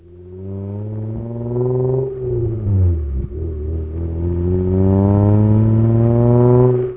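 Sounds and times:
car: 0.0 - 6.9.

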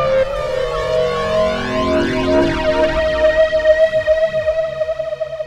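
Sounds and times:
synth: 0.1 - 5.4.

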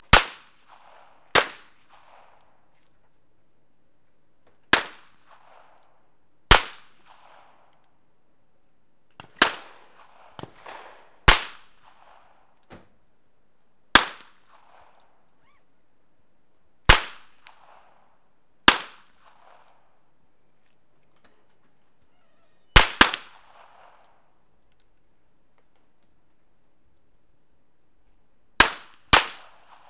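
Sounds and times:
gunfire: 0.0 - 2.6, 4.7 - 7.7, 9.2 - 12.6, 13.9 - 15.2, 16.9 - 20.0, 22.8 - 24.3, 28.6 - 29.8.

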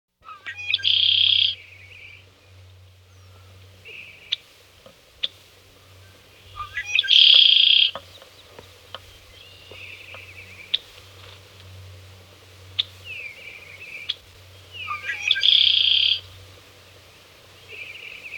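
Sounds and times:
blackbird singing: 0.2 - 2.2, 5.8 - 10.8, 12.8 - 16.3, 17.6 - 18.3.

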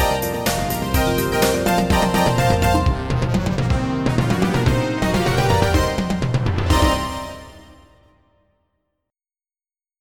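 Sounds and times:
staccato notes: 0.0 - 7.8.

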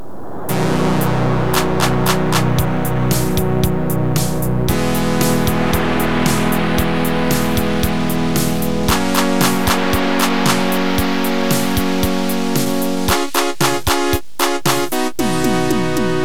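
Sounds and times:
chiptune sound: 0.5 - 16.2.

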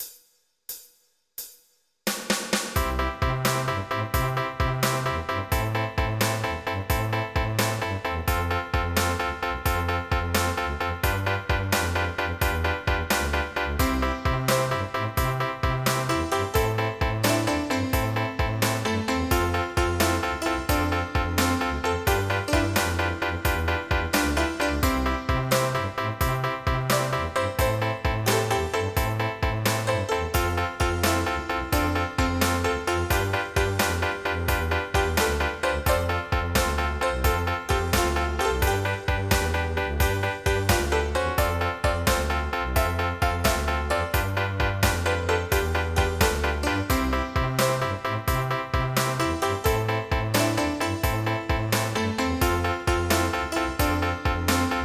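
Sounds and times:
1950s rock and roll music: 2.6 - 54.8.

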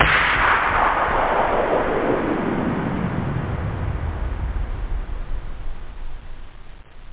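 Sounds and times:
explosion decay: 0.0 - 7.1.

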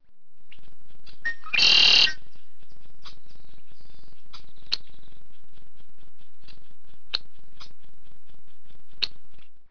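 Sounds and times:
blackbird singing: 1.2 - 5.2.

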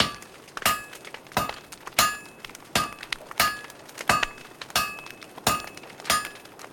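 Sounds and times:
blacksmith hammering loop: 0.0 - 6.5.

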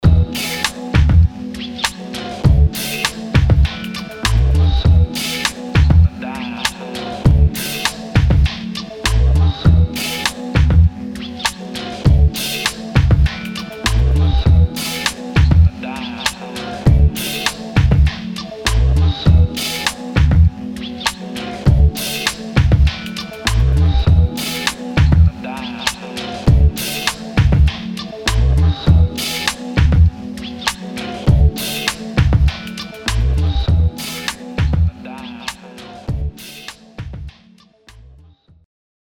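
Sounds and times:
abstract hip hop music: 0.0 - 38.1.

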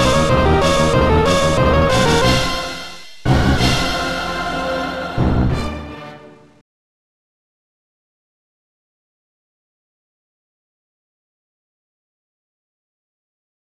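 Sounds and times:
synthetic symphony music: 0.0 - 6.6.

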